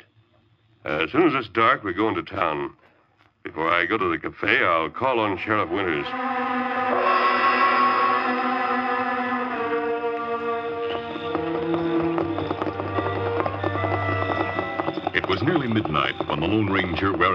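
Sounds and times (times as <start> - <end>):
speech: 0.8 - 2.8, 3.4 - 6.6, 15.4 - 17.3
sustained orchestral music: 5.4 - 17.3
hoofbeats of horses ridden at night and reined in: 8.1 - 17.3.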